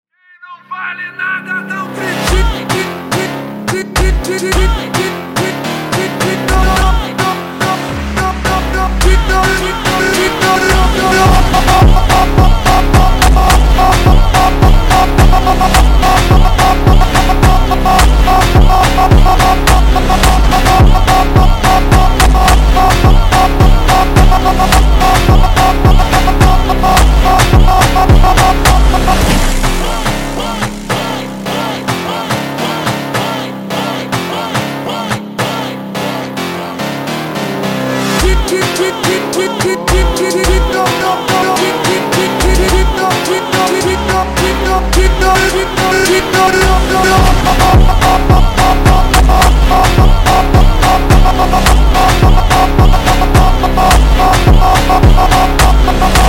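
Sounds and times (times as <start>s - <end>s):
slowed funk music: 2.0s - 56.2s.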